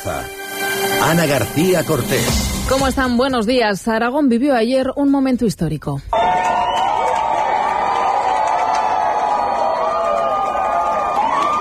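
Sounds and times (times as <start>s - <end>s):
speech: 1.1s - 6.5s
crowd of hundreds cheering at total eclipse: 6.1s - 11.5s.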